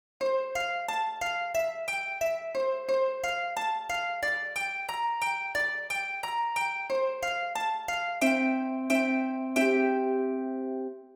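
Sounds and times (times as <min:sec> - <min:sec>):
harp: 0:00.2 - 0:11.1.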